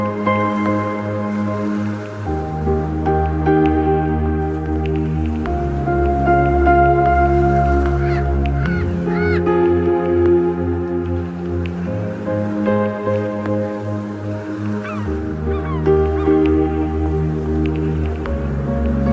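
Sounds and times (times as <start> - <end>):
ocean waves: 0.0 - 19.1
relaxing tropical music: 0.0 - 19.1.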